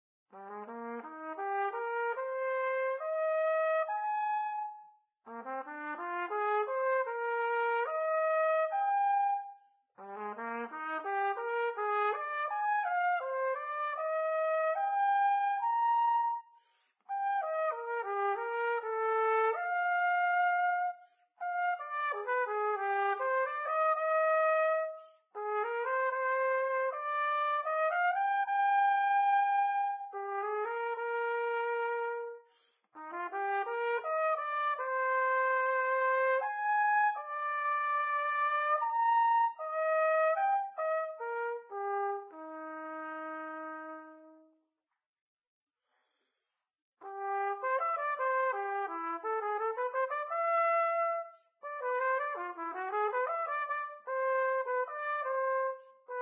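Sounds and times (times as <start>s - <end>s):
trumpet: 0.3s - 44.6s, 47.0s - 56.2s.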